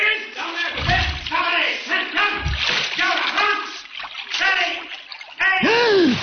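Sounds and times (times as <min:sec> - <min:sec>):
person speaking: 0:00.0 - 0:06.2
deep churning thumps of water: 0:00.4 - 0:06.2
body diving into water: 0:00.8 - 0:01.5, 0:02.4 - 0:06.2.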